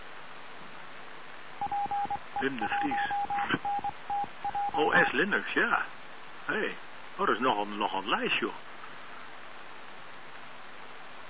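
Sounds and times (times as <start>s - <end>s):
computer beeping: 1.6s - 5.1s
speech: 2.4s - 8.7s.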